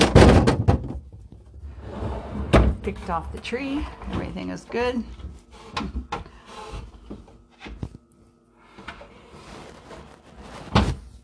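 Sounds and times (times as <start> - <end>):
refrigerator door closing: 0.0 - 1.1
speech: 2.8 - 6.2.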